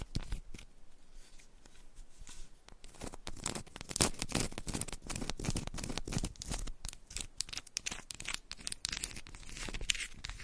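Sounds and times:
fingers scratching and tapping on a textured candle: 2.8 - 10.4.

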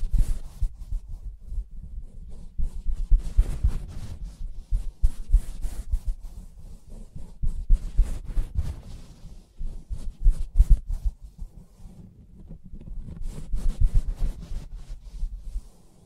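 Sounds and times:
fingers tapping and scratching on soft fabric: 2.4 - 9.0, 9.6 - 15.3.

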